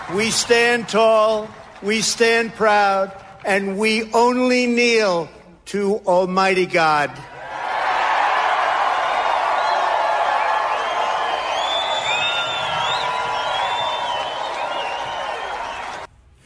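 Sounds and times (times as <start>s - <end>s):
large crowd applauding: 0.0s - 3.7s, 7.3s - 16.1s
speech: 0.1s - 7.3s
cheers and whoops: 7.4s - 16.1s.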